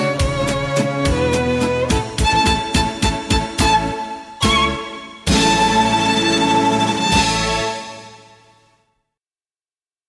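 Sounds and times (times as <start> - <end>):
instrumental Viennese waltz karaoke backing track: 0.0 - 8.3.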